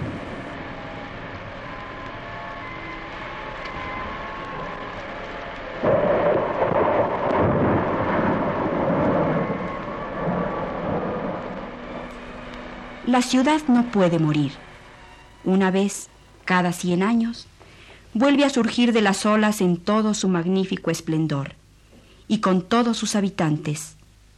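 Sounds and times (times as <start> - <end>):
deep thunder rumbling: 0.0 - 15.5
heavy rain in violent thunderstorm: 0.0 - 16.8
speech: 13.1 - 14.7, 15.5 - 17.5, 18.1 - 21.6, 22.3 - 24.0.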